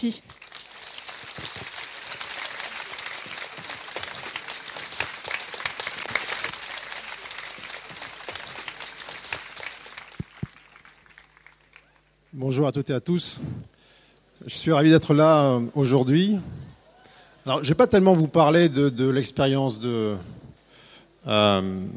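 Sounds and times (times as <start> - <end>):
speech: 0.0 - 0.6, 12.4 - 13.8, 14.4 - 16.6, 17.5 - 20.4, 21.2 - 21.9
audience applause: 0.2 - 12.1.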